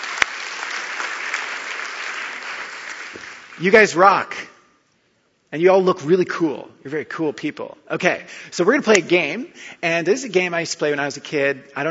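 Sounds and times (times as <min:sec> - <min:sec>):
audience applause: 0:00.0 - 0:03.9
speech: 0:03.1 - 0:04.5, 0:05.5 - 0:11.8.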